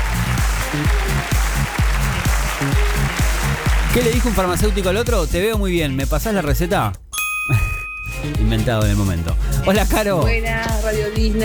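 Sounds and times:
applause: 0.0 - 5.0
speech: 0.7 - 1.8, 4.0 - 7.6, 8.3 - 11.4.

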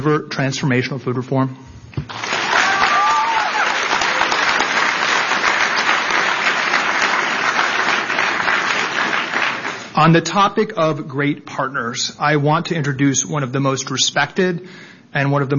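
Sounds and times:
speech: 0.0 - 2.2, 10.0 - 15.5
audience applause: 2.1 - 9.9.

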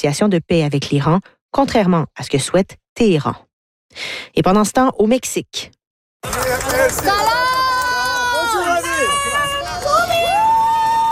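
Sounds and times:
speech: 0.0 - 7.7
supporters shouting to greet the Iranian national soccer team in Mexico: 6.2 - 11.1.

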